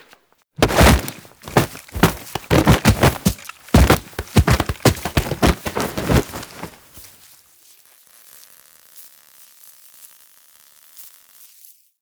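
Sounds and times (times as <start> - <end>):
foley object rolling: 0.6 - 7.1.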